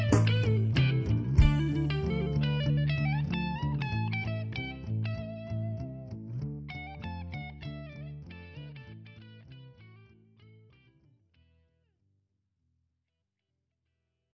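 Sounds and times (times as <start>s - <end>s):
blues drone: 0.0s - 8.8s.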